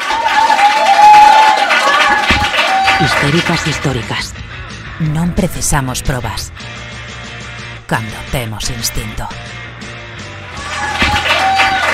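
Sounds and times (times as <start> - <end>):
applause: 0.0 - 4.3, 10.6 - 11.9
speech: 3.0 - 6.8, 7.9 - 9.6.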